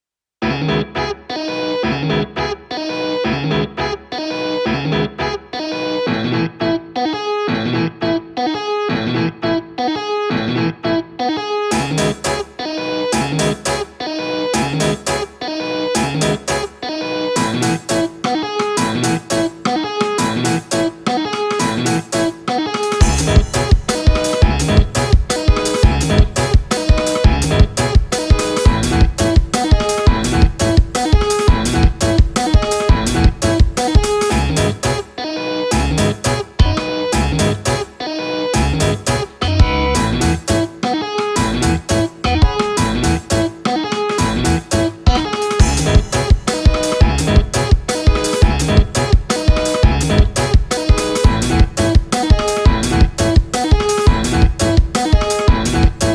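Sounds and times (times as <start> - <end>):
off vocal instrumental music: 0.5 - 56.1.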